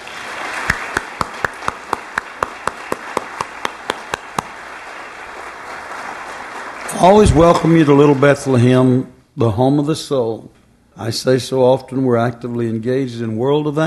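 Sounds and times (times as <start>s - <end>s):
audience clapping welcoming a guest at a church gathering: 0.0s - 8.8s
low hum: 0.0s - 13.8s
speech: 7.0s - 13.8s.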